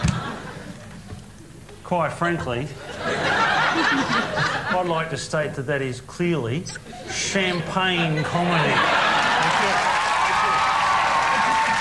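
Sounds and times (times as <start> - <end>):
laughter: 0.0 - 1.1, 2.8 - 5.1, 6.8 - 11.7
speech: 1.9 - 9.1
audience applause: 8.6 - 11.7.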